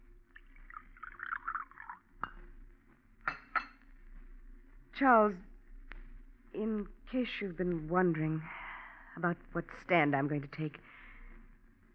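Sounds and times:
coffee being poured into a cup: 0.2s - 2.5s
speech: 5.0s - 5.5s, 6.6s - 8.6s, 9.2s - 11.0s.

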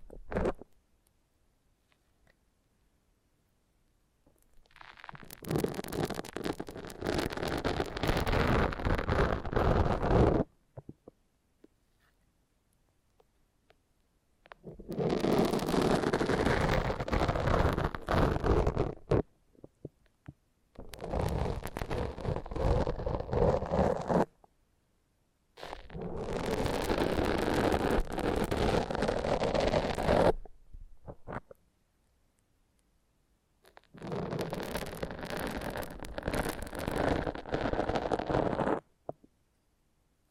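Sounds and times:
foam massage rubbing and squeaking: 4.6s - 10.5s, 14.6s - 19.2s, 20.8s - 24.3s, 25.6s - 30.5s, 33.7s - 38.9s.

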